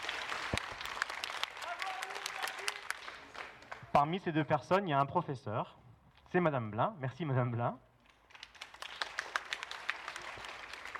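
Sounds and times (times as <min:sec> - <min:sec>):
audience applause: 0:00.0 - 0:04.0, 0:08.3 - 0:10.9
speech: 0:04.0 - 0:07.9.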